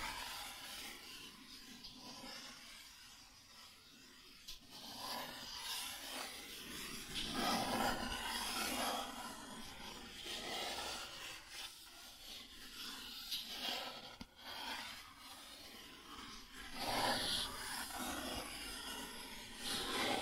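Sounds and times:
cardboard being scratched and rubbed: 0.0 - 20.2.

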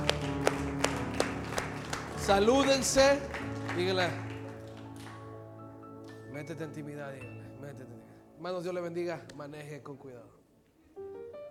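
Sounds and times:
hand claps: 0.0 - 5.3
speech: 2.3 - 4.2, 6.4 - 7.4, 8.4 - 10.4.

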